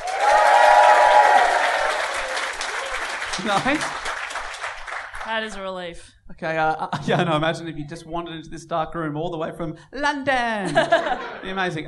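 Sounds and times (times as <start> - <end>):
audience applause: 0.0 - 5.3
speech: 3.4 - 4.1, 5.3 - 11.8
laughter: 10.6 - 11.8.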